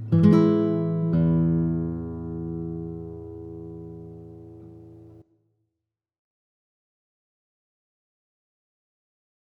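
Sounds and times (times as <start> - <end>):
classical guitar: 0.0 - 5.3.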